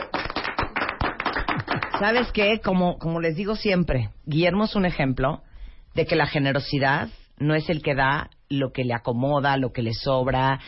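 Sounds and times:
applause: 0.0s - 2.5s
speech: 2.0s - 10.6s.

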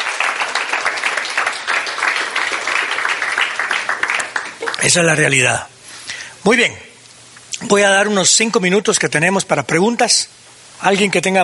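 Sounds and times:
crowd applauding loudly: 0.0s - 5.5s
speech: 4.8s - 5.7s, 6.4s - 6.9s, 7.6s - 11.4s.

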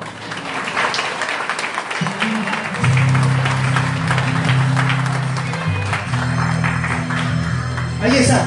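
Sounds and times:
applause: 0.0s - 8.3s.

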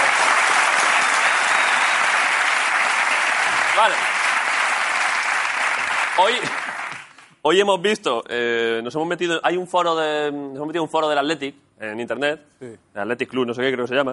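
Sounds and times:
audience applause: 0.0s - 7.2s
speech: 3.8s - 4.2s, 6.2s - 6.7s, 7.4s - 14.1s.

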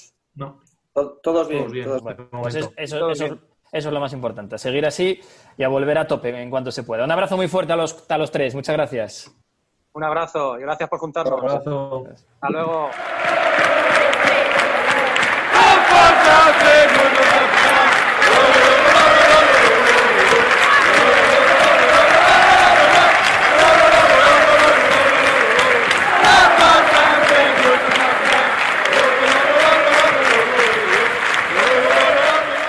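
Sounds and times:
speech: 0.4s - 9.4s, 10.0s - 14.5s
football stadium crowd chanting: 12.8s - 32.6s.

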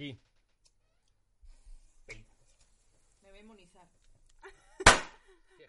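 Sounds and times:
speech: 0.0s - 0.3s
firecracker dropped on the floor indoors exploding: 4.8s - 5.2s.

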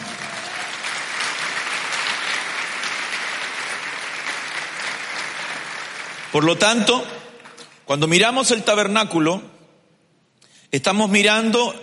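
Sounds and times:
audience clapping: 0.0s - 7.8s
speech: 6.3s - 7.2s, 7.9s - 9.5s, 10.7s - 11.8s.

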